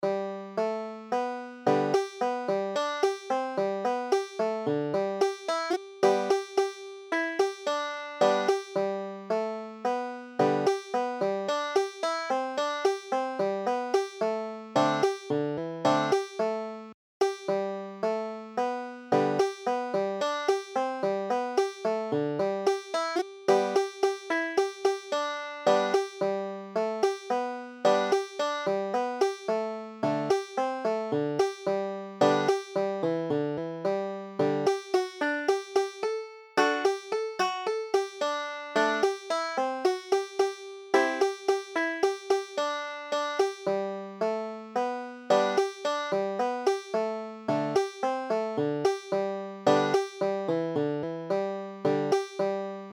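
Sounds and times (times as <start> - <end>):
banjo: 0.0 - 52.9.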